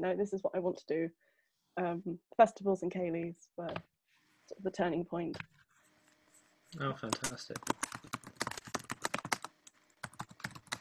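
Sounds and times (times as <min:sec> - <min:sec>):
speech: 0:00.0 - 0:03.9, 0:04.5 - 0:05.6, 0:06.7 - 0:07.9
typing a message on a computer keyboard: 0:07.1 - 0:10.8.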